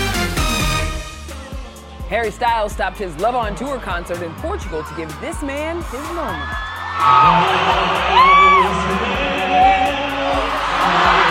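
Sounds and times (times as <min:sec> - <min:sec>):
speech: 0:02.1 - 0:09.7
concert crowd cheering: 0:03.0 - 0:11.3
high rising-and-falling whoops: 0:06.3 - 0:08.7.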